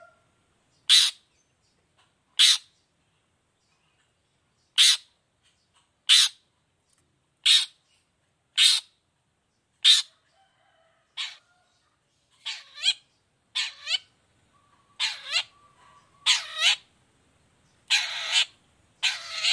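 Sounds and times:
long-tailed shrike harsh rasping notes: 0.9s - 1.3s, 2.4s - 2.7s, 4.8s - 5.1s, 8.6s - 9.0s, 12.4s - 16.9s, 17.9s - 19.5s.

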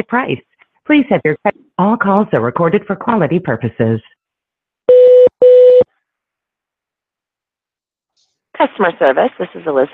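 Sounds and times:
speech: 0.0s - 4.2s, 8.6s - 9.9s
telephone keypad tones in a psychic hotline phone menu: 4.9s - 5.9s.

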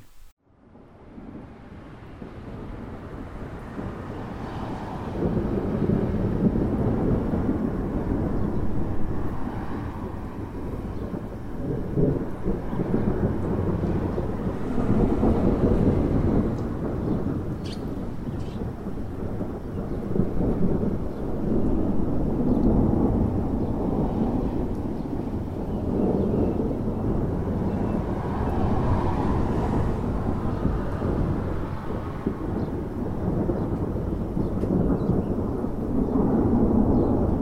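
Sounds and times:
steady rainfall: 0.0s - 0.3s, 1.0s - 37.4s
deep rolling low rumble: 5.2s - 37.4s.

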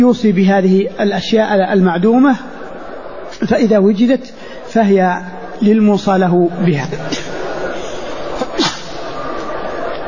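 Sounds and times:
speech: 0.0s - 2.5s, 3.4s - 7.2s
person sneezing: 8.4s - 9.1s.

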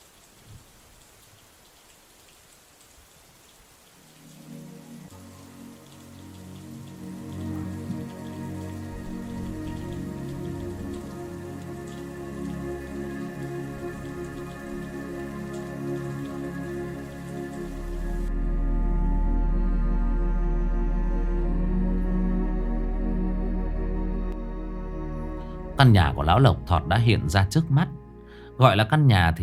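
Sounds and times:
light drizzling rain: 0.0s - 24.5s, 25.1s - 29.4s
low sustained tonal hum: 6.5s - 28.4s
speech: 25.8s - 28.0s, 28.6s - 29.4s.

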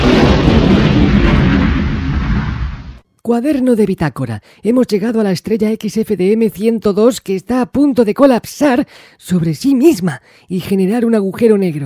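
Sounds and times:
spaceship explosion sound effect from a radio comedy: 0.0s - 3.0s
speech: 3.3s - 11.8s.

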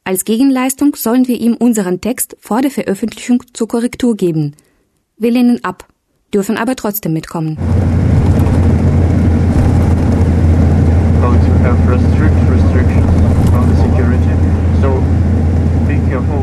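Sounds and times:
speech: 0.1s - 8.2s
bus engine drone: 7.6s - 16.4s.

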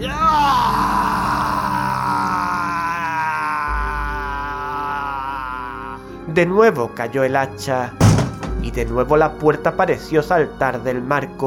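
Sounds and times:
horrible scream of animal terror: 0.3s - 6.0s
speech: 6.4s - 8.0s, 8.6s - 11.4s.

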